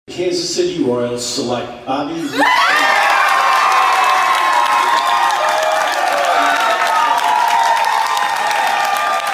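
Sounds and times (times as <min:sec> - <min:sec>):
speech: 0:00.2 - 0:03.0
family and friends cheering and whooping: 0:02.3 - 0:09.3
clapping: 0:02.8 - 0:09.3.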